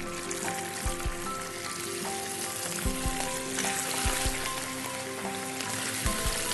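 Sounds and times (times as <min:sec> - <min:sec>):
fish frying skin side down in oil in a pot: 0:00.0 - 0:06.5.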